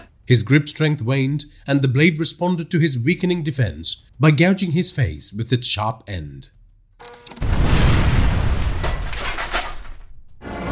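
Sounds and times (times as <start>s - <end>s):
speech: 0.3s - 6.6s
crashing, shattering debris from an explosion: 7.3s - 10.4s
explosion near a pumping station: 7.4s - 10.5s.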